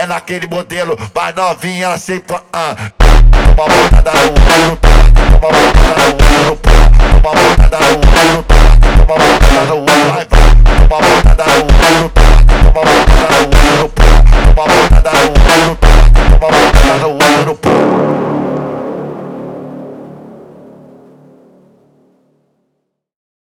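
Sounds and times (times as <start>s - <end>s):
phonk montagem music: 3.0s - 21.5s.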